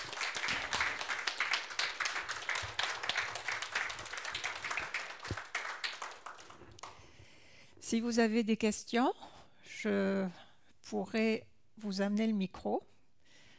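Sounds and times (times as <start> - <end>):
audience applause: 0.0 - 7.0
speech: 7.9 - 12.9.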